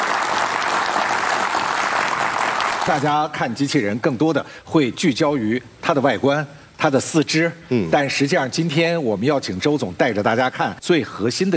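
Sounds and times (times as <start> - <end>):
audience applause at a robot demonstration event: 0.0 - 3.1
speech: 2.9 - 11.5.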